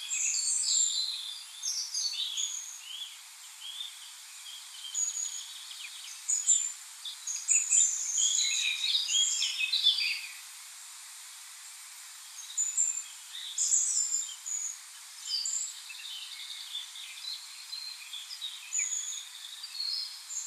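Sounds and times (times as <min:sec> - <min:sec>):
common blackbird song: 0:00.0 - 0:10.4, 0:12.2 - 0:20.4.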